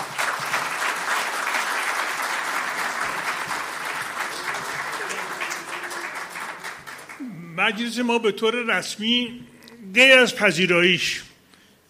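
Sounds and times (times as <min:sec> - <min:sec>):
audience applause: 0:00.0 - 0:07.4
speech: 0:07.6 - 0:11.3.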